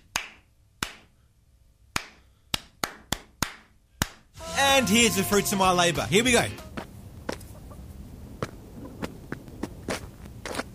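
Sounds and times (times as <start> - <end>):
rhythm clapped out with hands: 0.0 - 1.1, 1.9 - 4.3
speech: 4.8 - 6.6.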